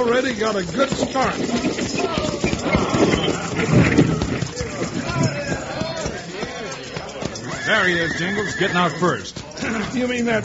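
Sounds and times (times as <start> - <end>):
speech: 0.0 - 5.3, 7.7 - 10.4
stagecoach rumbling and rattling: 0.0 - 6.2
galloping hooves of a horse-drawn stagecoach on a street: 0.0 - 10.4.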